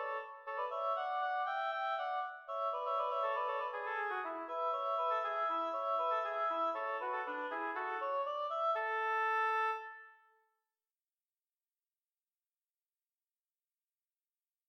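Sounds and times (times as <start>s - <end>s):
duet of two oboes: 0.0s - 10.1s.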